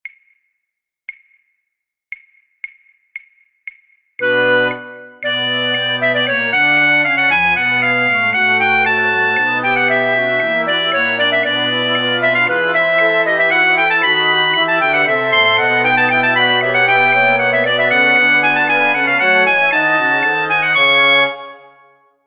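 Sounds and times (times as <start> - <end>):
flute orchestra: 4.5 - 22.0.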